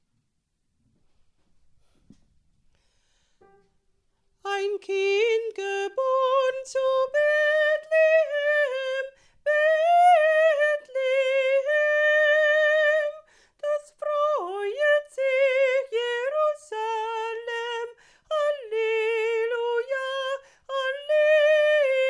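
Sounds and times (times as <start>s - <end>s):
soprano part singing: 4.4s - 22.0s.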